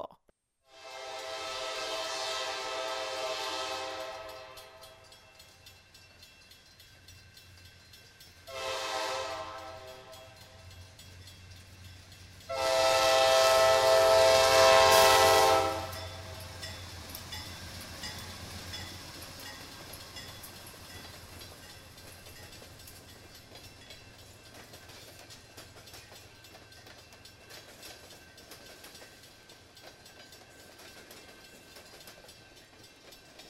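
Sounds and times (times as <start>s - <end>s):
train horn blasts: 0.7s - 5.0s, 8.5s - 10.4s, 12.5s - 16.3s
train engine rumbling past: 0.9s - 33.4s.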